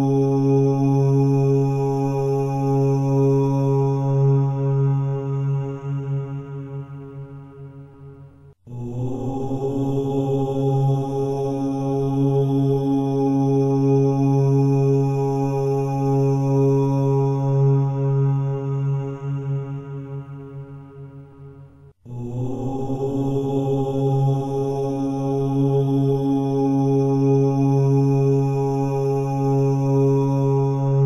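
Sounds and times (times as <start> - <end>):
mantra chanting: 0.0 - 21.5, 22.1 - 31.0.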